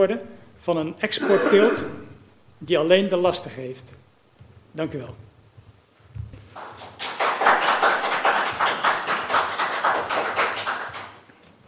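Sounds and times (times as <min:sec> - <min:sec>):
speech: 0:00.0 - 0:04.0, 0:04.8 - 0:05.2
crowd clapping in a public gallery: 0:06.5 - 0:11.3.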